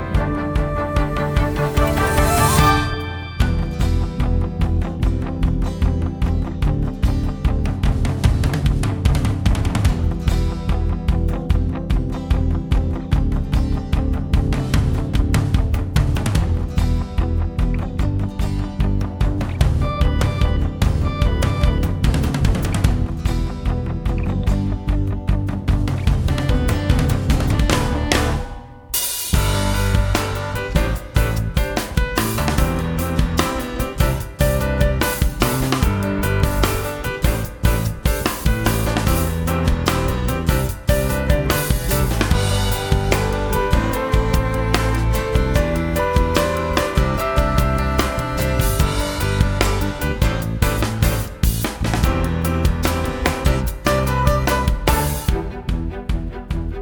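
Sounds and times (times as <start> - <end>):
instrumental music: 0.0 - 56.8.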